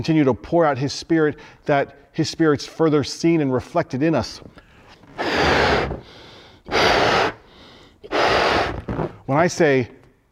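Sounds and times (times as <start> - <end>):
speech: 0.0 - 4.6, 9.3 - 10.0
balloon being blown up: 5.1 - 9.3.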